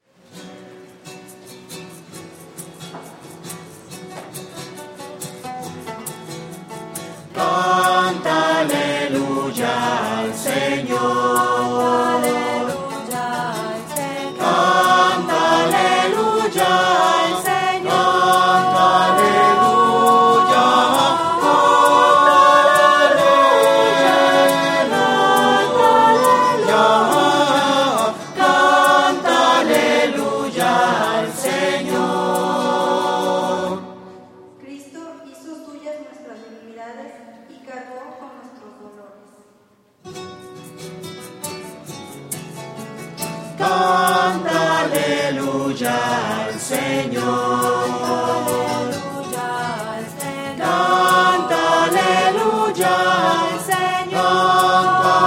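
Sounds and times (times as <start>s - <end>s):
voices singing alleluia: 7.3s - 34.3s, 43.6s - 55.2s.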